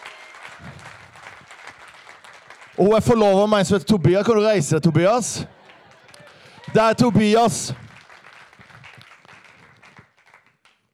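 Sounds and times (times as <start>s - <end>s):
guests at a birthday party clapping: 0.0s - 3.6s, 5.4s - 10.9s
speech: 2.8s - 5.6s, 6.8s - 7.8s
laughter: 5.0s - 9.8s.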